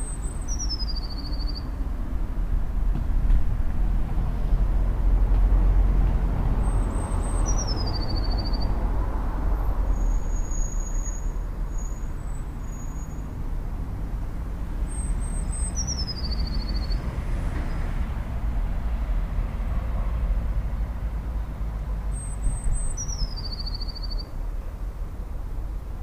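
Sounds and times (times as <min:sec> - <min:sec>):
Eurasian blue tit song: 0:00.0 - 0:01.8, 0:06.6 - 0:08.8, 0:09.9 - 0:13.4, 0:14.8 - 0:17.9, 0:22.0 - 0:24.4
low traffic rumble: 0:00.0 - 0:26.0.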